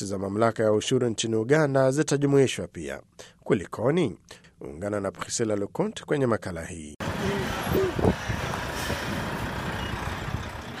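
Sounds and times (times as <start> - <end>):
speech: 0.0 - 8.5
truck engines rumbling at a border truck stop in Busia, Uganda: 7.0 - 10.7.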